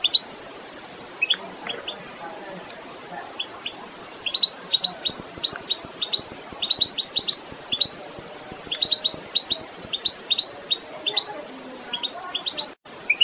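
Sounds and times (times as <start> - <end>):
goldfinch twittering: 0.0 - 0.3, 1.2 - 2.1, 3.3 - 8.0, 8.6 - 13.2.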